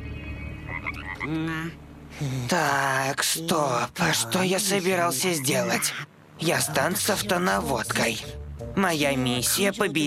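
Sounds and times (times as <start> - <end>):
faint steady hum: 0.0 - 10.0
frog croaking: 0.6 - 1.8, 3.6 - 7.2
speech: 1.2 - 10.0.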